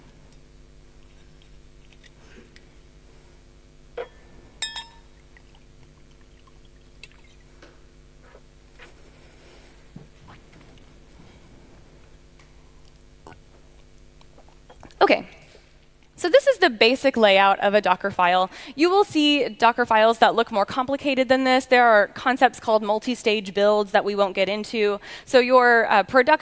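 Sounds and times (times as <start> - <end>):
quiet humming background: 0.0 - 22.3
glass clinking while grabbing water: 4.0 - 5.1
faint pouring or sipping: 5.3 - 7.4
speech: 15.1 - 15.4, 16.2 - 26.4.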